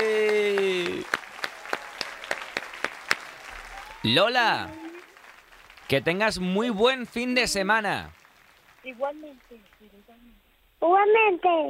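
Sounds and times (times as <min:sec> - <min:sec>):
applause: 0:00.0 - 0:10.1
speech: 0:04.0 - 0:04.8, 0:05.9 - 0:08.2, 0:08.8 - 0:11.6.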